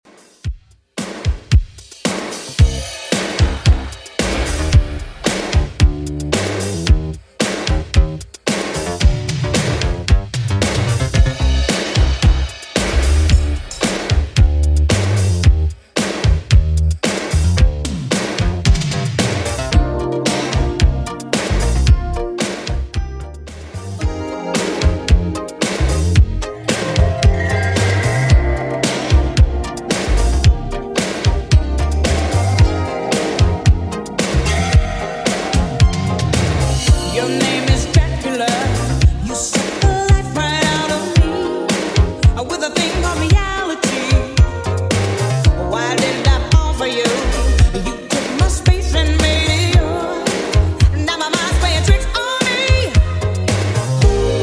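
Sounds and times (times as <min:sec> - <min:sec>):
1980s drum machine beat: 0:00.0 - 0:54.4.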